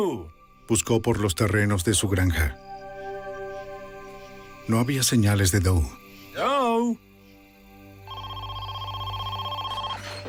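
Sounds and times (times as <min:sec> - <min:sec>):
speech: 0:00.0 - 0:02.7, 0:04.7 - 0:07.1
telephone ringing: 0:08.1 - 0:10.2.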